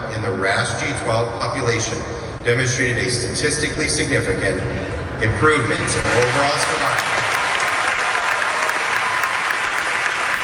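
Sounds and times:
speech: 0:00.2 - 0:07.1
oncology conference audience applause: 0:05.2 - 0:10.4.

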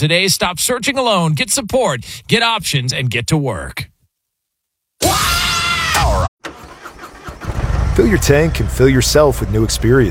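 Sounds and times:
speech: 0:00.0 - 0:03.9, 0:05.0 - 0:06.3, 0:08.0 - 0:10.0
Harley-Davidson motorcycle engine starting: 0:06.0 - 0:10.0.

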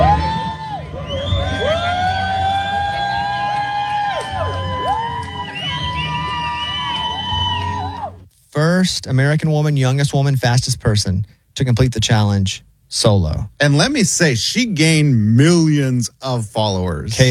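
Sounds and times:
crowd cheering at a finish line: 0:00.0 - 0:08.3
speech: 0:08.8 - 0:17.2.

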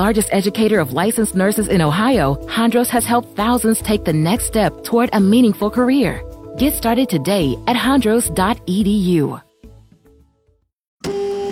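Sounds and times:
speech: 0:00.0 - 0:09.4
printer whirring after being fixed: 0:11.0 - 0:11.5.

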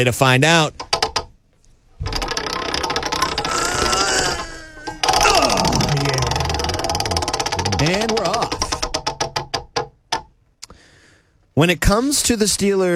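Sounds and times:
speech: 0:00.0 - 0:00.8, 0:11.6 - 0:12.9
game-show prize wheel spinning with ratcheting clicks: 0:02.0 - 0:09.4.

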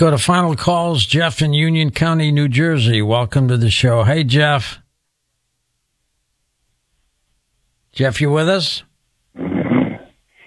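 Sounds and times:
speech: 0:00.0 - 0:04.8, 0:08.0 - 0:09.5
man snoring over phone line: 0:09.4 - 0:10.4.

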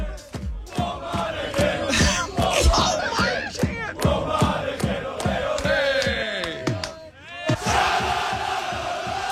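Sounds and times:
large crowd of football fans chanting and shouting in a store: 0:00.0 - 0:09.3
laughter: 0:01.8 - 0:04.2
claps or stomps: 0:05.5 - 0:07.1.

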